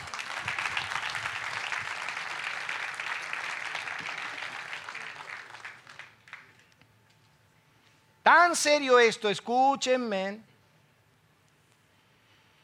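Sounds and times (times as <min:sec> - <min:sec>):
audience applause: 0:00.0 - 0:06.6
speech: 0:08.3 - 0:10.5.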